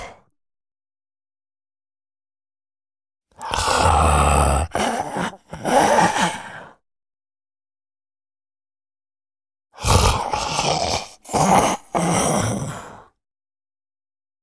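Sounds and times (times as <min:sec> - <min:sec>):
huge calm wandering male zombie breathing: 0:03.5 - 0:06.8, 0:09.9 - 0:13.1.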